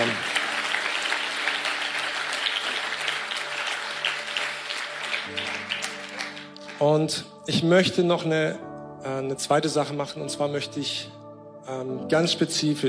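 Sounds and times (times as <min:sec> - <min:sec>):
audience applause: 0:00.0 - 0:06.8
speech: 0:06.8 - 0:12.8.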